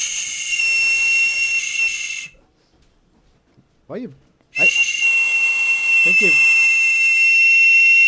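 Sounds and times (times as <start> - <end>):
toy whistle blasts: 0.0 - 2.4, 4.6 - 8.0
man speaking: 6.1 - 6.4.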